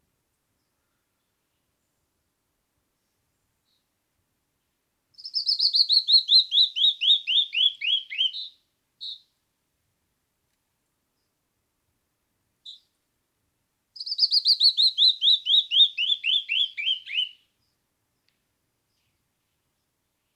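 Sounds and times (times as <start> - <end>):
canyon wren descending whistled song: 5.2 - 9.2, 14.0 - 17.4.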